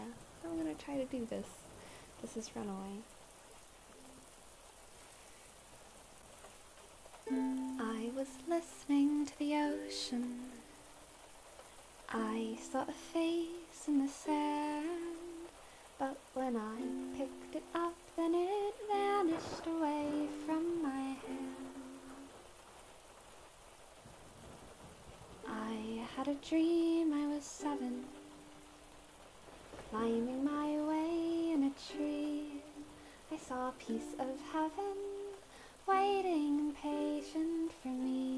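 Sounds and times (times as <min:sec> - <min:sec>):
rain: 0:00.0 - 0:38.3
ukulele jamming: 0:07.2 - 0:10.7, 0:16.8 - 0:22.5, 0:25.6 - 0:28.8, 0:30.0 - 0:33.0
thunder: 0:19.2 - 0:22.4, 0:24.0 - 0:25.5.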